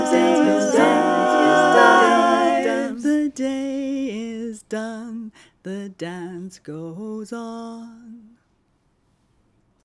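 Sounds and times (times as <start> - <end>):
full music track: 0.0 - 3.0.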